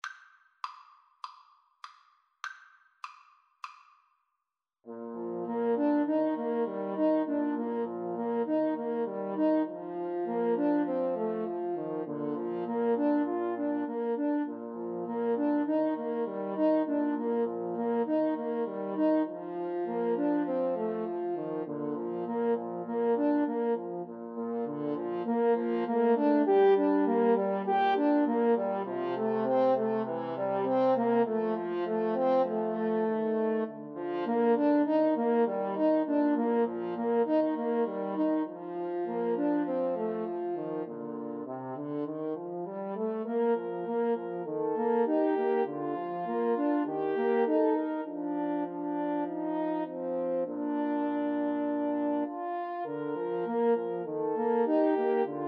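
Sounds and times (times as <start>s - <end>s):
French horn trio: 4.9s - 55.4s.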